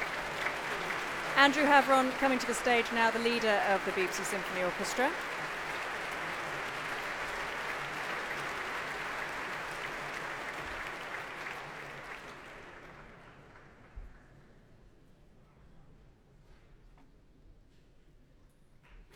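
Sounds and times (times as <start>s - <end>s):
concert hall audience applause at the Royal Albert Hall: 0.0s - 13.8s
speech: 1.4s - 5.4s.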